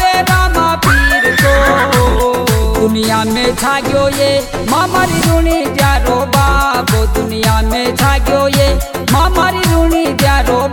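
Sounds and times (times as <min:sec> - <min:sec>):
devotional folk song with drumbeats and instrumental backing: 0:00.0 - 0:10.7
horse neighing in a devotional folk song: 0:00.9 - 0:02.4
speech: 0:03.0 - 0:10.7.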